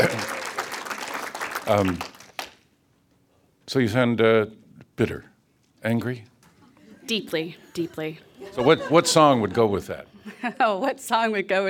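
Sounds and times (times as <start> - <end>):
person applauding: 0.0 - 2.6
speech: 1.7 - 2.1, 3.7 - 6.3, 7.1 - 11.6
laughter: 6.6 - 10.8.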